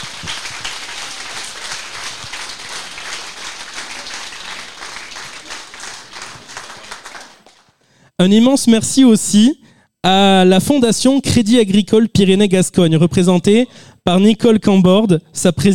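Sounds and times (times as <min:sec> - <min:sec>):
audience applause: 0:00.0 - 0:07.8
speech: 0:08.2 - 0:15.7.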